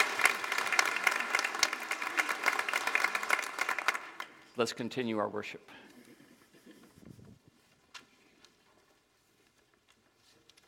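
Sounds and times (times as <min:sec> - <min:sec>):
crowd round of applause: 0:00.0 - 0:04.5
speech: 0:04.6 - 0:05.8.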